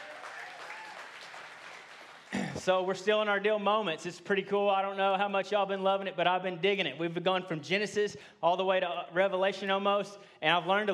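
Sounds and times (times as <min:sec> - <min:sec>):
church congregation applauding the tech, video and music teams: 0:00.0 - 0:02.8
speech: 0:02.6 - 0:10.9.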